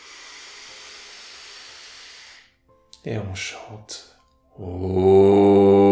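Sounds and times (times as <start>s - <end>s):
long slow inhale through the nose during a breathing exercise: 0.0s - 2.6s
speech: 3.0s - 5.8s.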